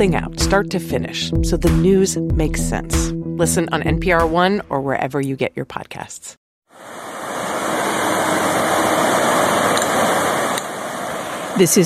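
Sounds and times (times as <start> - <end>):
speech: 0.0 - 7.0, 11.6 - 11.8
Missouri River water rushing: 6.7 - 11.7.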